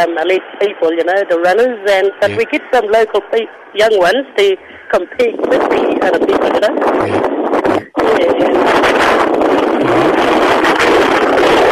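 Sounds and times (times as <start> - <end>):
speech: 0.0 - 9.6
wind blowing on a microphone outdoors at a running race: 2.2 - 11.7.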